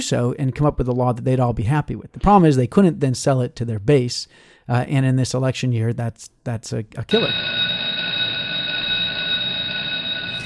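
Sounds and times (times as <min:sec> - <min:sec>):
speech: 0:00.0 - 0:07.8
shrill metallic bell ringing: 0:07.1 - 0:10.4.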